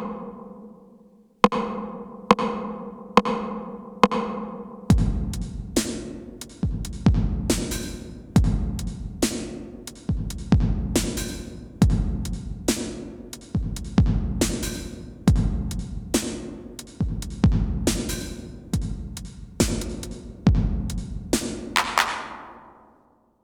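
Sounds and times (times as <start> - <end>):
TR909 drum machine through Sony DRE 2000 and MU R201 hall reverb: 1.5 - 23.0.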